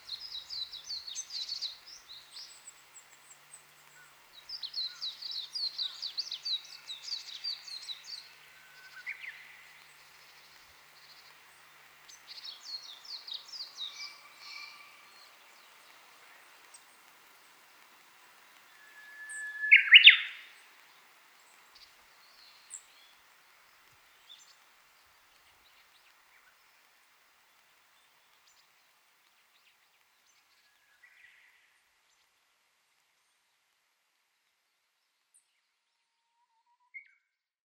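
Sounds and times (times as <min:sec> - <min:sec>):
Japanese bush warbler in early summer in Moriya, Ibaraki: 0:00.0 - 0:28.9.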